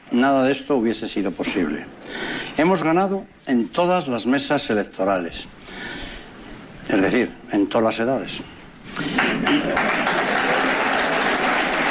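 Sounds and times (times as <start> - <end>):
speech: 0.1 - 6.0, 6.9 - 9.9
applause: 9.0 - 11.9.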